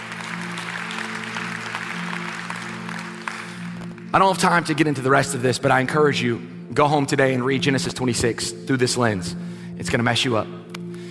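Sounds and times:
crowd applauding: 0.0s - 4.7s
speech: 4.1s - 10.7s.

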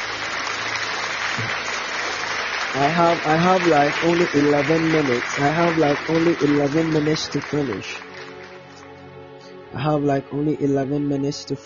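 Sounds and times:
audience clapping hands: 0.0s - 9.0s
speech: 2.8s - 8.1s, 9.7s - 11.6s.

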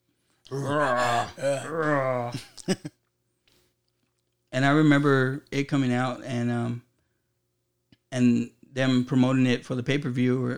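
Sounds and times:
man grunting and groaning in an acted film scene: 0.5s - 2.6s
speech: 0.5s - 3.0s, 4.6s - 6.8s, 8.1s - 10.5s.

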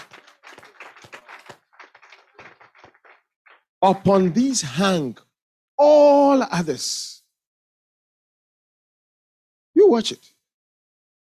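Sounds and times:
audience clapping: 0.0s - 5.1s
speech: 3.8s - 5.2s, 5.8s - 7.1s, 9.9s - 10.4s.

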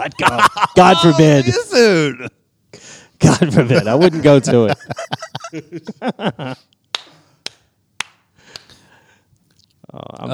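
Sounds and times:
laughter: 0.0s - 2.3s, 3.2s - 6.7s
speech: 0.0s - 2.4s, 3.2s - 6.8s, 9.9s - 10.3s
hand clapping: 6.9s - 8.9s.

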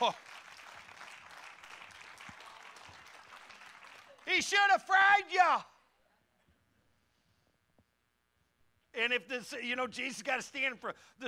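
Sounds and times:
speech: 0.0s - 0.4s, 4.2s - 5.7s, 9.0s - 11.2s
audience clapping: 0.0s - 4.8s.

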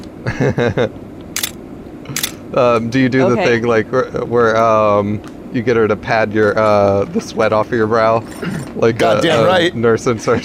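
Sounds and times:
laughter: 0.2s - 1.0s, 2.8s - 4.3s, 8.4s - 10.4s
speech: 0.3s - 1.0s, 2.1s - 10.4s
camera shutter clicking while taking photos: 1.4s - 1.6s.

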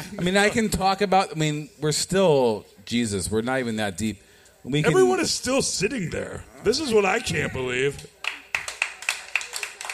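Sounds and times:
speech: 0.0s - 8.1s
crowd applause: 8.2s - 9.9s.

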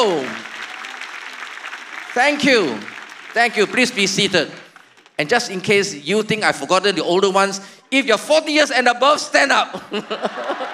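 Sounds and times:
speech: 0.0s - 0.4s, 2.2s - 4.6s, 5.2s - 10.7s
audience clapping: 0.0s - 5.9s, 10.2s - 10.7s
laughter: 9.7s - 10.7s.

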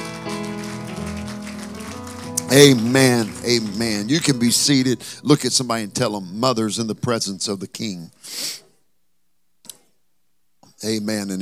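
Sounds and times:
audience applause: 0.0s - 5.2s
speech: 2.5s - 8.6s, 10.8s - 11.4s.

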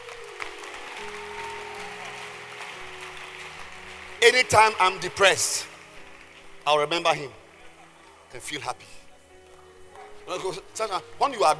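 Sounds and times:
audience clapping: 0.0s - 6.7s
speech: 4.2s - 5.7s, 6.6s - 7.4s, 8.3s - 9.0s, 10.3s - 11.5s.

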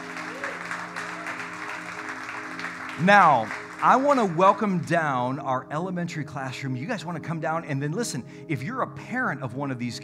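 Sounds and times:
congregation applauding during a church service: 0.0s - 5.0s
speech: 3.0s - 10.0s.

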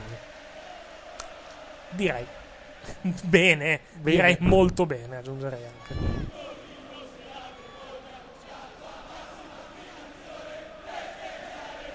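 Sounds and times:
football fans chanting in a stadium: 0.0s - 4.4s, 5.9s - 11.9s
speech: 1.9s - 6.4s.

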